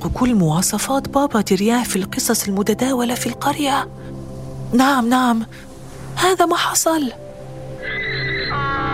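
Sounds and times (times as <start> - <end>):
speech: 0.0 - 7.2
donkey braying: 7.8 - 8.8.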